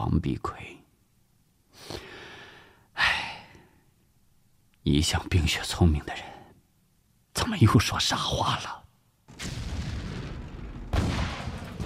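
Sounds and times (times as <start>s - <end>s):
speech: 0.2s - 0.8s, 4.9s - 6.4s, 7.5s - 9.6s
distant artillery fire: 9.3s - 11.8s.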